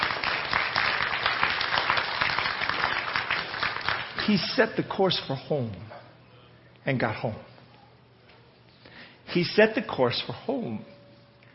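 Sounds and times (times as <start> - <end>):
audience clapping: 0.0 - 4.6
speech: 4.3 - 5.9, 6.8 - 7.5, 9.3 - 11.0.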